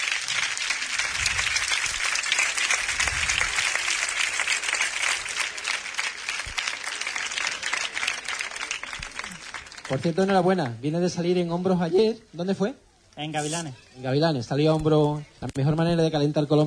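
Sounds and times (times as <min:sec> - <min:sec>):
audience applause: 0:00.0 - 0:10.8
speech: 0:09.9 - 0:16.6.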